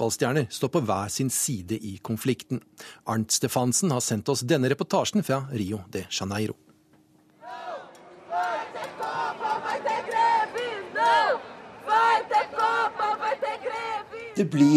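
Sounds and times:
speech: 0:00.0 - 0:06.7, 0:14.4 - 0:14.7
crowd of demonstrators chanting: 0:07.4 - 0:14.7.

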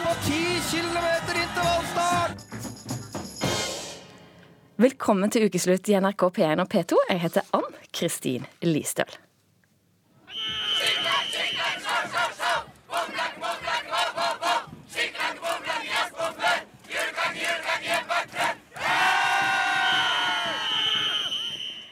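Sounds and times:
Norwegian russ graduates shouting and cheering in spring: 0:00.0 - 0:02.4, 0:10.3 - 0:21.6
speech: 0:04.8 - 0:09.3.

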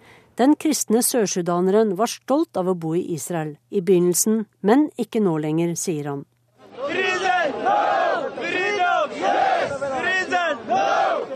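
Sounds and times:
speech: 0:00.4 - 0:07.0
crowd of protesters chanting a slogan in unison: 0:06.6 - 0:11.3.

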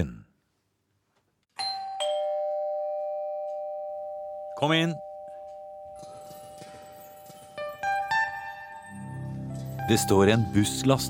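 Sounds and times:
two-tone doorbell chime: 0:01.5 - 0:09.1
speech: 0:04.6 - 0:05.1, 0:09.9 - 0:11.0.

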